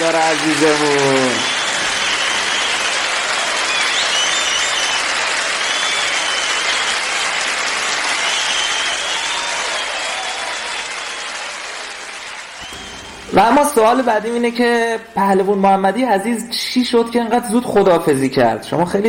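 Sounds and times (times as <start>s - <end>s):
speech: 0.0s - 1.5s, 13.4s - 19.0s
crowd applauding: 0.0s - 14.1s.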